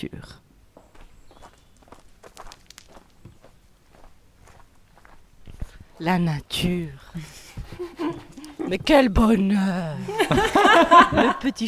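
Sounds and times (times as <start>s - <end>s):
speech: 0.0s - 0.4s, 6.0s - 11.6s
footsteps walking on the ground: 0.7s - 9.5s
laughter: 7.2s - 8.8s, 10.0s - 11.6s.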